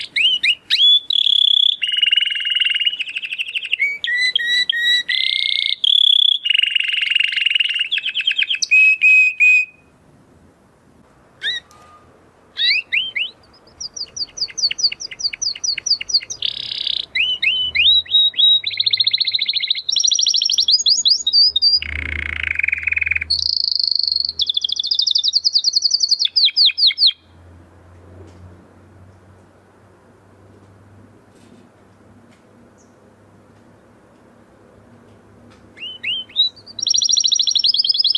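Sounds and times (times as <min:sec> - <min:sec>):
canary singing: 0:00.0 - 0:10.0, 0:11.4 - 0:27.3, 0:35.8 - 0:38.1.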